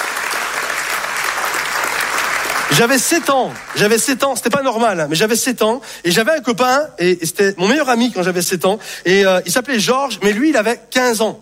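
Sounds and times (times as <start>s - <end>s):
audience applause: 0.0s - 4.3s
speech: 2.7s - 11.3s.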